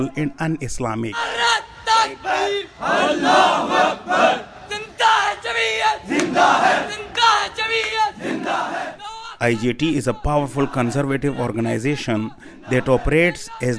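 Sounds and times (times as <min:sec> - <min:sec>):
speech: 0:00.0 - 0:04.5, 0:09.4 - 0:13.7
group of voices shouting angrily: 0:01.2 - 0:09.2.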